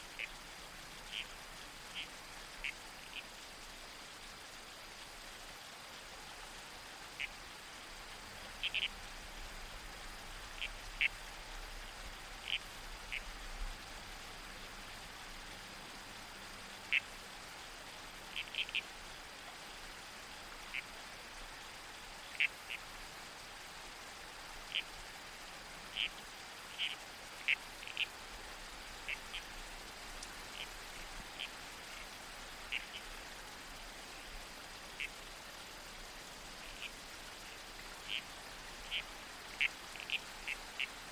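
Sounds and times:
babbling creek water: 0.0 - 41.1
red-crowned toadlet croaks: 1.1 - 3.3, 8.6 - 8.9, 10.6 - 11.2, 12.4 - 13.3, 16.8 - 17.2, 18.2 - 18.9, 22.2 - 22.9, 24.7 - 24.9, 25.9 - 29.5, 30.4 - 33.2, 36.5 - 41.0.

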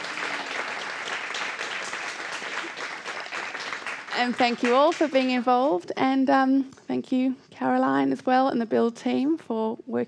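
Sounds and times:
crowd clapping: 0.0 - 5.4
speech: 4.2 - 10.0.

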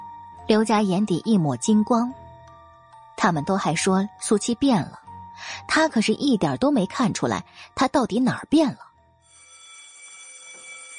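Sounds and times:
speech: 0.5 - 2.2, 3.2 - 8.8
school dismissal bell ringing: 9.3 - 10.9.

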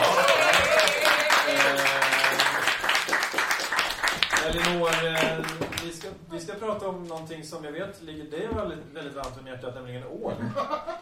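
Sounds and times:
audience applause: 0.0 - 5.9
speech: 6.6 - 11.0.

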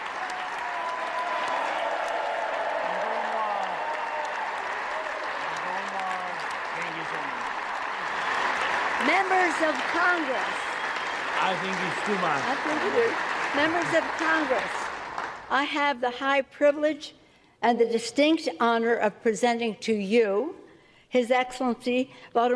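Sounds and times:
cheers and shouted voices: 0.0 - 15.0
large crowd giving standing ovation in legislative chamber: 0.0 - 15.6
speech: 9.1 - 10.6, 11.4 - 14.8, 15.5 - 22.5.

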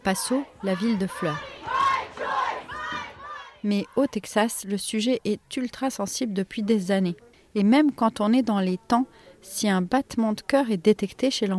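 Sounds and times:
speech: 0.0 - 1.5, 3.6 - 11.5
protest crowd chanting at demonstration: 0.0 - 4.5.

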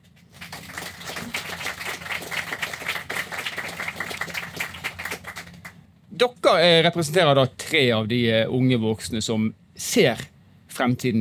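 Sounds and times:
audience applause: 0.2 - 5.8
speech: 6.2 - 11.1.

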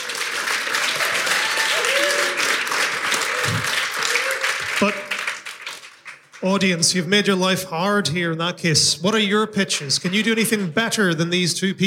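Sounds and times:
audience applause: 0.0 - 6.4
speech: 6.4 - 11.8.

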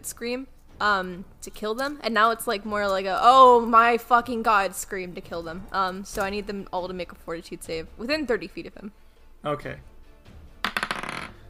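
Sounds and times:
speech: 0.0 - 9.9
dice rolling on a hard tabletop: 10.6 - 11.4.

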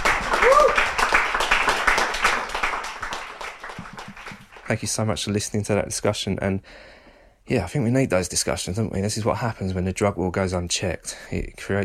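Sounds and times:
audience applause: 0.0 - 4.7
whoop or cheer: 0.3 - 1.0
speech: 4.7 - 11.8.

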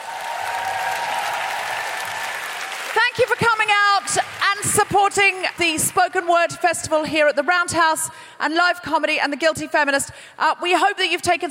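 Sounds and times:
live audience applause: 0.0 - 5.8
speech: 4.9 - 11.4.

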